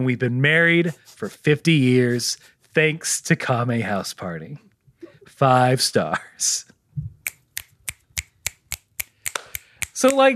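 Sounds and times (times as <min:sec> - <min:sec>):
speech: 0:00.0 - 0:04.7, 0:05.4 - 0:07.1, 0:10.0 - 0:10.3
finger snaps: 0:07.2 - 0:10.3.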